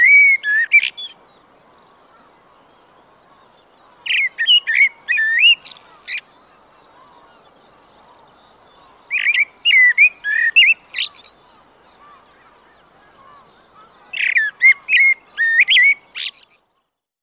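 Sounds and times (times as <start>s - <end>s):
blackbird singing: 0.0s - 16.8s.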